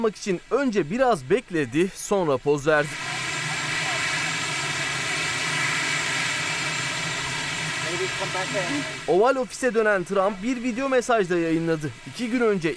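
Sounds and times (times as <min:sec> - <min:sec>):
speech: 0:00.0 - 0:03.1, 0:08.0 - 0:12.7
helicopter engine and rotors roaring: 0:02.9 - 0:09.3.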